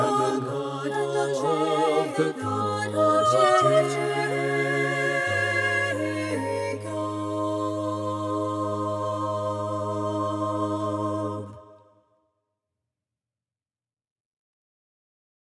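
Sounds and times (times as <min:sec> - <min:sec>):
choir singing joyfully with tenor part muted: 0:00.0 - 0:12.0.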